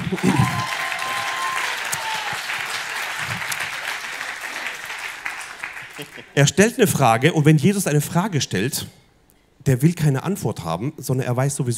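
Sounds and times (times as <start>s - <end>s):
audience applause: 0.0s - 6.4s
speech: 0.1s - 0.6s, 6.1s - 9.0s, 9.6s - 11.7s.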